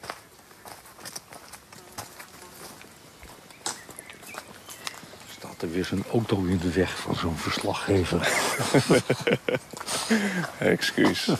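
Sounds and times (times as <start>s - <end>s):
footsteps of people walking outdoors in a nature area: 0.0s - 11.3s
faint bird chirps: 3.2s - 6.0s
speech: 5.6s - 11.3s
laughter: 7.8s - 11.3s.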